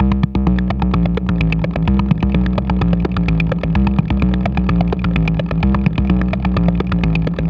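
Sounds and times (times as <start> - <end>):
dirty groove music: 0.0 - 7.4.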